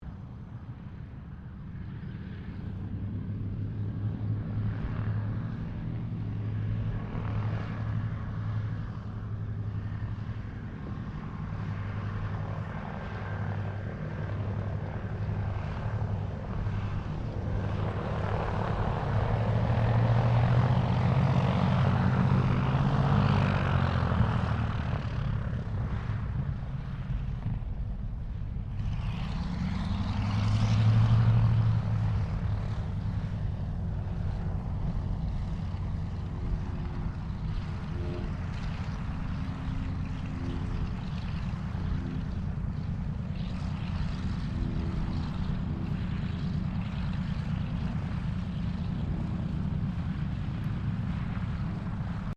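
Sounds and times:
distant Douglas DC3 commercial aircraft taxiing: 0.0s - 52.3s.

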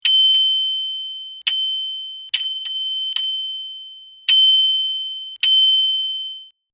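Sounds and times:
bicycle bell ringing: 0.0s - 6.6s.

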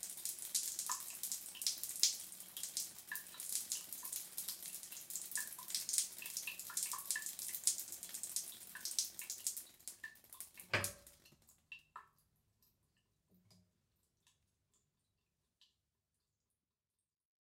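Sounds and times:
bathroom shower turned on and running: 0.0s - 11.3s
shower water dripping: 0.0s - 16.6s.

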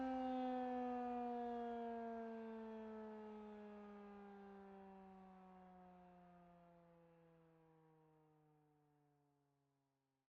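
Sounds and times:
tornado emergency siren: 0.0s - 5.2s.

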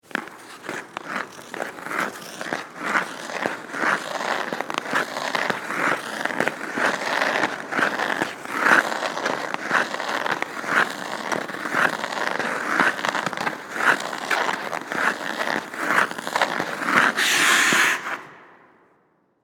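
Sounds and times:
ice skates on an indoor ice rink: 0.0s - 19.4s.

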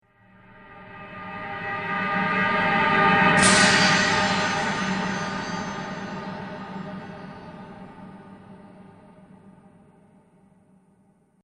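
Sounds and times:
strong metallic swoosh: 0.7s - 9.3s.

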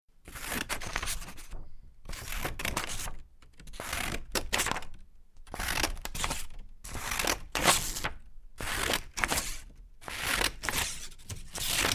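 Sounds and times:
scissors cutting paper: 2.1s - 4.9s, 5.5s - 11.9s.

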